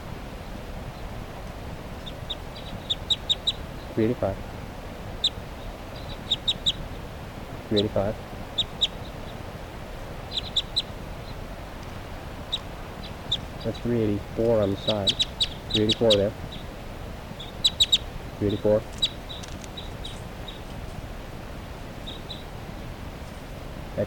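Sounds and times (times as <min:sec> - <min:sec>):
flock of birds calling: 0:01.9 - 0:04.5, 0:05.2 - 0:07.0, 0:07.6 - 0:21.1, 0:21.9 - 0:22.6
speech: 0:04.0 - 0:04.5, 0:07.7 - 0:08.3, 0:13.6 - 0:16.4, 0:18.4 - 0:19.0.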